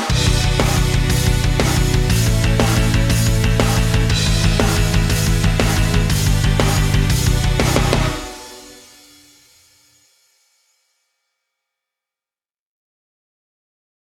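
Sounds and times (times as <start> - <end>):
karaoke singing: 0.1 - 8.6.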